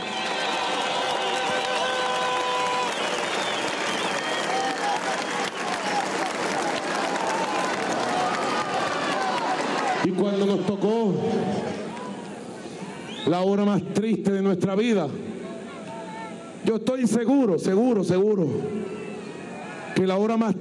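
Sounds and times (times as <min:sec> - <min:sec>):
crowd cheering and shouting: 0:00.0 - 0:13.1, 0:18.6 - 0:20.4
large crowd applauding: 0:00.0 - 0:13.2
speech: 0:10.0 - 0:11.7, 0:13.2 - 0:15.3, 0:16.7 - 0:19.0, 0:20.0 - 0:20.5.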